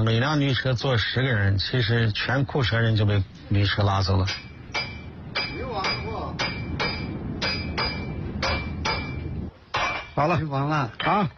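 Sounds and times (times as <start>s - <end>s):
speech: 0.0s - 4.5s, 10.2s - 11.3s
small hammer striking metal: 4.3s - 10.3s.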